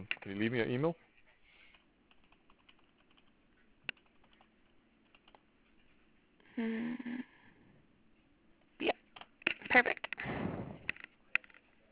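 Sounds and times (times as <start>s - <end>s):
speech: 0.0s - 1.1s, 6.6s - 7.2s, 9.7s - 10.4s
typing on a computer keyboard into a chat during a call: 1.7s - 5.4s.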